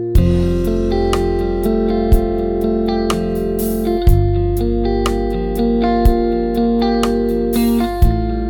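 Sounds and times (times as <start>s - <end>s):
arpeggio: 0.2s - 8.4s.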